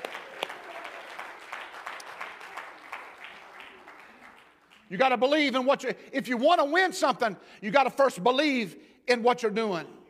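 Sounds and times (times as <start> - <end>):
audience clapping hands: 0.0 - 5.4
speech: 4.9 - 10.0.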